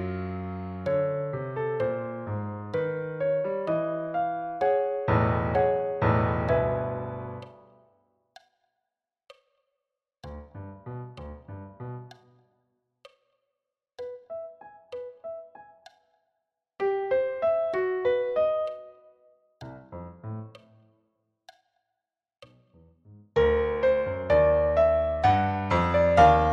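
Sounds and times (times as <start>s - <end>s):
solo piano: 0.0s - 7.8s, 10.5s - 12.2s, 14.0s - 15.9s, 16.8s - 20.8s, 23.4s - 26.5s.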